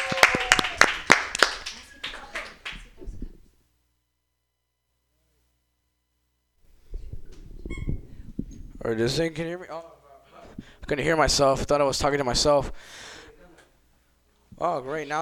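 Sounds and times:
audience applause: 0:00.0 - 0:02.9
speech: 0:08.9 - 0:10.0, 0:10.9 - 0:13.1, 0:14.6 - 0:15.2.

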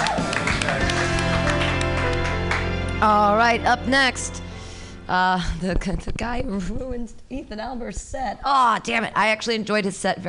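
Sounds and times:
audience clapping loudly: 0:00.0 - 0:03.2
speech: 0:03.0 - 0:04.4, 0:05.1 - 0:10.2.

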